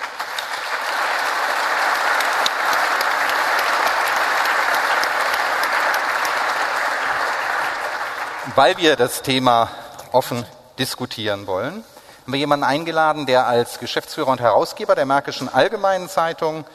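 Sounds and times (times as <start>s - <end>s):
audience applause welcoming a panel guest: 0.0s - 9.0s
speech: 8.6s - 16.7s.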